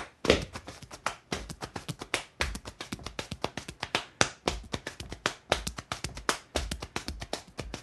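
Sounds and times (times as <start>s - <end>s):
hambone body percussion hand slaps on leg and chest: 0.0s - 7.8s.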